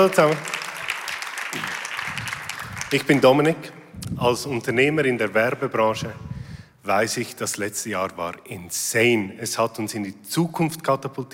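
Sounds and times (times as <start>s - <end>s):
speech: 0.0s - 0.6s, 2.9s - 6.2s, 6.8s - 11.3s
crowd applause: 0.0s - 3.5s.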